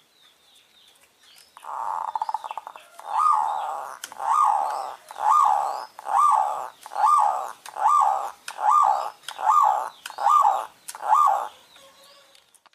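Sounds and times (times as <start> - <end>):
zebra dove delivering bubbling coo phrases: 1.6 - 11.6.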